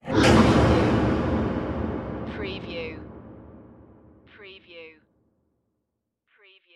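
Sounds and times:
dark production element impact hit: 0.0 - 4.3.

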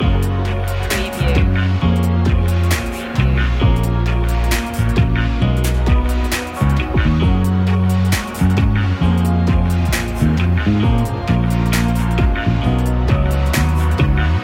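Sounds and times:
blissful music loop: 0.0 - 14.4.

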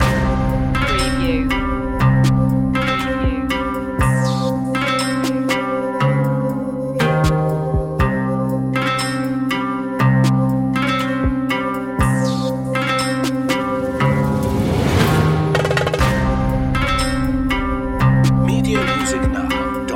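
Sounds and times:
mystical eastern music loop: 0.0 - 19.9.

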